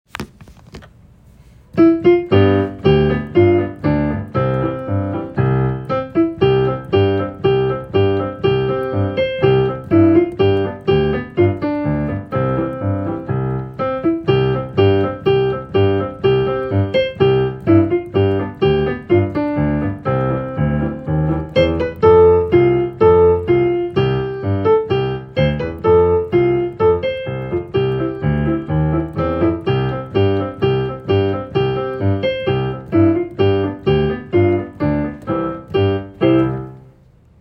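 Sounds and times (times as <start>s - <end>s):
hymn on piano: 1.7s - 37.3s.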